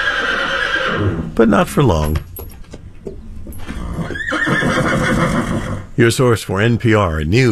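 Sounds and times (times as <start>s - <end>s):
horse neighing in a barn: 0.0s - 1.8s, 3.2s - 6.0s
speech: 1.0s - 2.3s, 6.0s - 7.5s.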